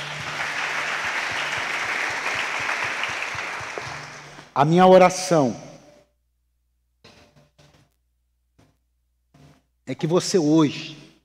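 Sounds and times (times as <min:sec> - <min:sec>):
crowd applauding: 0:00.0 - 0:04.5
speech: 0:04.6 - 0:05.7, 0:10.0 - 0:11.0.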